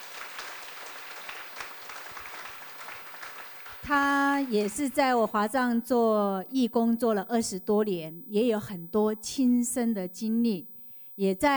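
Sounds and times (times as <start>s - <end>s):
applause: 0.0s - 5.0s
speech: 3.9s - 11.5s.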